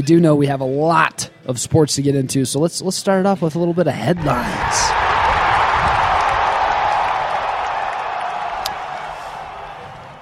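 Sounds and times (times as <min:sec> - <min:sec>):
speech: 0:00.0 - 0:05.1
long applause: 0:04.2 - 0:10.2.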